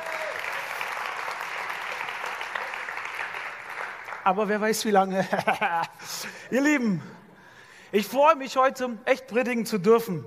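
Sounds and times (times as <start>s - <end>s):
audience applause: 0.0s - 4.6s
speech: 4.2s - 7.2s, 7.9s - 10.2s
laughter: 5.2s - 6.3s.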